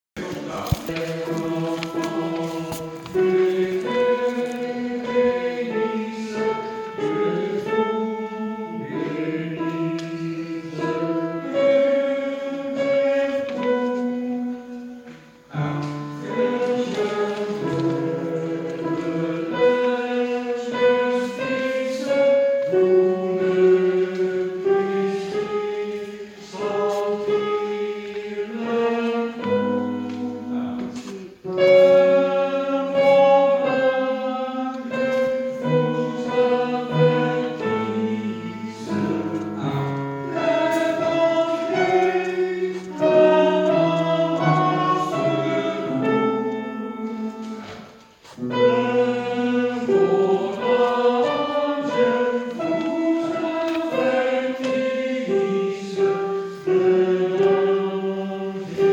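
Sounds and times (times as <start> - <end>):
tenor voice singing: 0.2 - 58.9.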